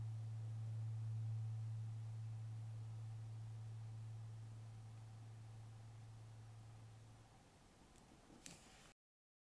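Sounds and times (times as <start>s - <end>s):
111Hz aluminium tuning fork ringing: 0.0s - 7.4s.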